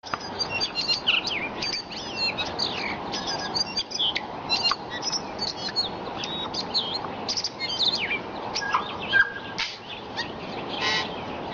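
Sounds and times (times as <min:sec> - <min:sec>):
Tui singing at sunrise: 0:00.0 - 0:11.5.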